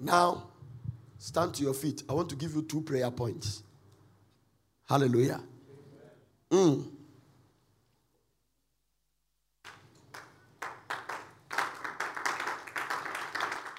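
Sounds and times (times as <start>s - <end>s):
speech: 0.0s - 0.5s, 1.2s - 3.7s, 4.9s - 5.5s, 6.5s - 7.0s
church congregation clapping during a service: 9.6s - 13.7s.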